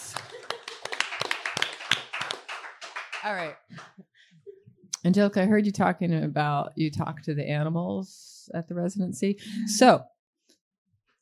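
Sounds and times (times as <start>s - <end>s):
people clapping: 0.0s - 4.0s
speech: 3.2s - 4.0s, 5.0s - 10.1s.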